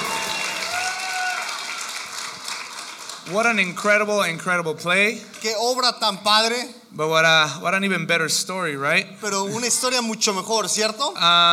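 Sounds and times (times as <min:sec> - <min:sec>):
audience applause: 0:00.0 - 0:04.1
speech: 0:03.3 - 0:11.5.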